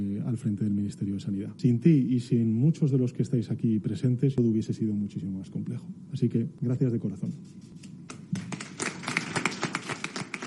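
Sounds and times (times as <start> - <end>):
speech: 0.4 - 7.9
applause: 8.1 - 10.4.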